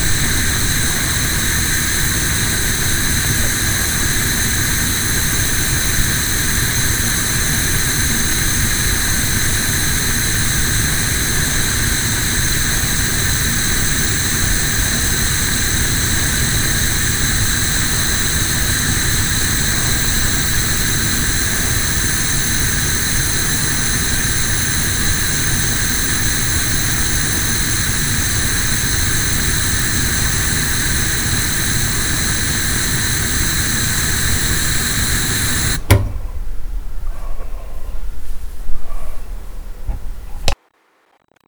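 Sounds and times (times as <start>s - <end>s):
gas flame: 0.0s - 40.6s.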